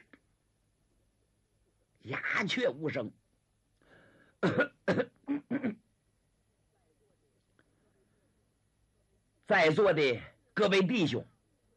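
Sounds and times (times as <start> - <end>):
speech: 2.0 - 3.2, 4.4 - 4.6, 9.5 - 11.3
storyteller clearing throat: 4.4 - 5.8.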